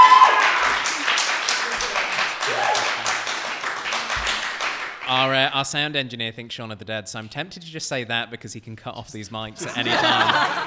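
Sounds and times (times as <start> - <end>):
audience clapping to vote: 0.0 - 5.5
laughter: 0.7 - 3.2, 9.6 - 10.6
speech: 5.6 - 10.6.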